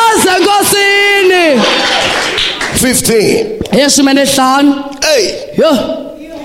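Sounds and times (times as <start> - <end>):
audience clapping: 0.2 - 3.3
speech: 2.8 - 6.1.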